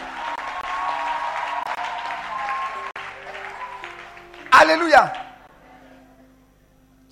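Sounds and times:
congregation clapping to acclaim God during a church service: 0:00.0 - 0:05.5
speech: 0:04.6 - 0:05.2.

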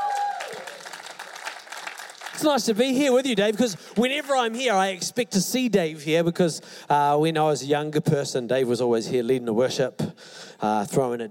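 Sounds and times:
audience applause: 0:00.0 - 0:04.6
speech: 0:02.4 - 0:11.2.

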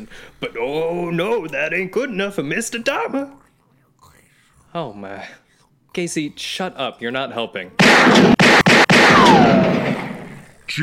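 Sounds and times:
speech: 0:00.0 - 0:03.4, 0:04.7 - 0:05.4, 0:06.0 - 0:08.4
gunshot: 0:07.8 - 0:10.5.

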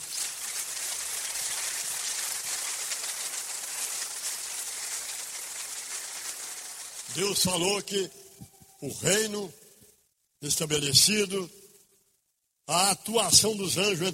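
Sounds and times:
crowd clapping: 0:00.0 - 0:07.9
speech: 0:07.1 - 0:08.2, 0:08.8 - 0:09.6, 0:10.4 - 0:11.6, 0:12.7 - 0:14.1.

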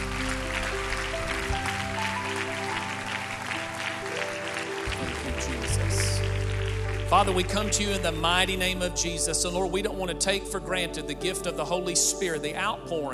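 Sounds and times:
audience clapping hands: 0:00.0 - 0:09.6
speech: 0:07.1 - 0:13.1.

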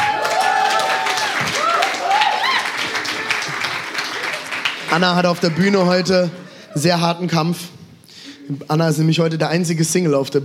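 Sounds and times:
audience applause: 0:00.0 - 0:06.4
speech: 0:04.9 - 0:07.7, 0:08.5 - 0:10.4.

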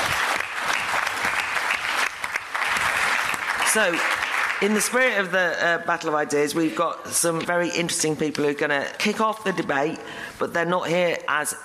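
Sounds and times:
audience applause: 0:00.0 - 0:04.9
speech: 0:03.7 - 0:11.6.

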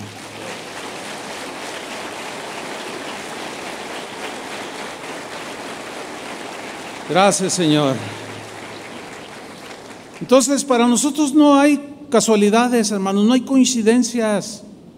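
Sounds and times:
audience applauding: 0:00.0 - 0:11.0
speech: 0:07.1 - 0:08.2, 0:10.2 - 0:14.7.

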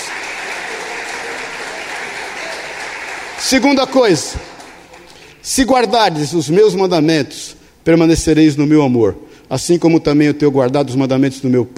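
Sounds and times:
audience applauding: 0:00.0 - 0:05.4
speech: 0:03.4 - 0:04.5, 0:05.4 - 0:11.7.

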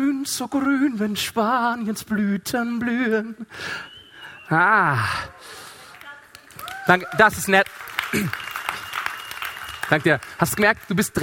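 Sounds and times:
speech: 0:00.2 - 0:03.9, 0:04.5 - 0:05.6, 0:06.9 - 0:08.5, 0:09.9 - 0:11.2
audience clapping: 0:05.5 - 0:11.2.

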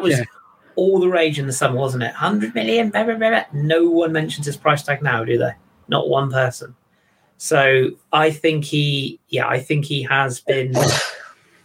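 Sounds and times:
speech: 0:00.0 - 0:06.8, 0:07.4 - 0:11.1
sneeze or cough: 0:10.7 - 0:11.4.

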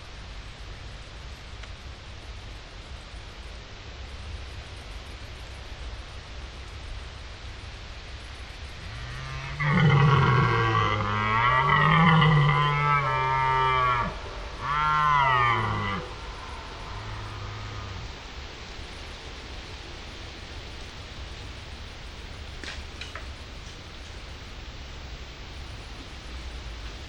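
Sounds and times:
steady hiss of wind or rustling: 0:00.0 - 0:27.0
red deer stag roaring in a forest: 0:08.8 - 0:18.3.

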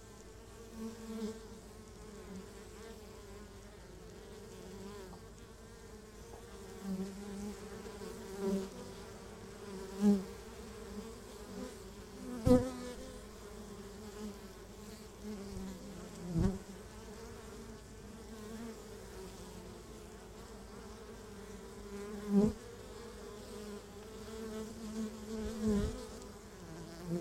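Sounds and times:
honey bees humming at the hive: 0:00.0 - 0:27.1.

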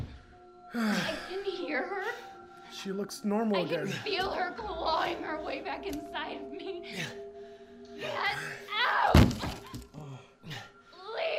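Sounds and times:
speech: 0:00.7 - 0:07.2, 0:08.0 - 0:09.6
head smashing against a wall: 0:09.1 - 0:09.8.

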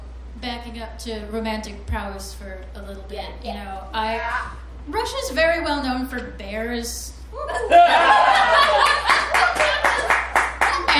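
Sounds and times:
speech: 0:00.4 - 0:09.0
laughter: 0:07.4 - 0:10.9
audience applause: 0:08.0 - 0:10.9.

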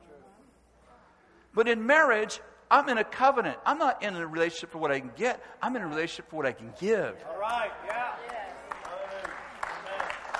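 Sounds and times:
speech: 0:01.6 - 0:08.1
crowd clapping: 0:07.4 - 0:10.3.

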